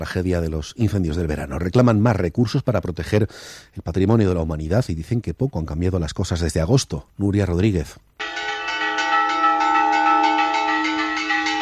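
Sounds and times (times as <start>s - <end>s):
speech: 0.0s - 8.1s
church bell tolling as a fire alarm: 8.2s - 11.6s.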